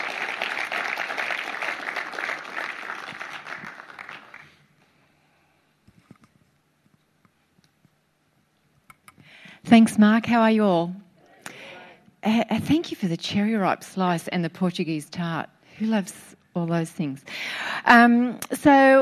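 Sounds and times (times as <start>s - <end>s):
audience applause welcoming a speaker: 0.0s - 4.6s
speech: 9.7s - 11.0s, 12.2s - 18.9s.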